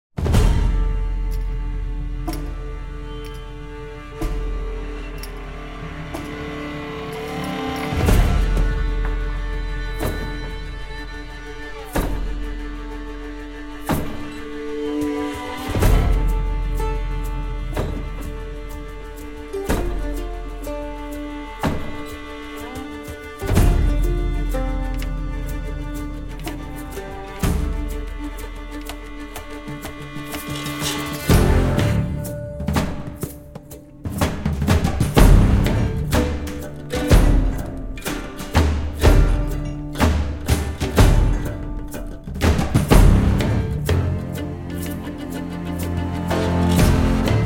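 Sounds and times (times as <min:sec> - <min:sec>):
music: 0:00.2 - 0:47.4.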